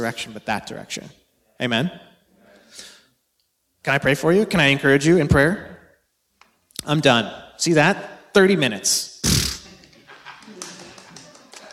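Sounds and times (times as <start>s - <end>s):
speech: 0.0s - 2.1s, 3.8s - 5.7s, 6.8s - 9.4s
laughter: 9.5s - 11.7s
single person clapping: 10.5s - 11.7s.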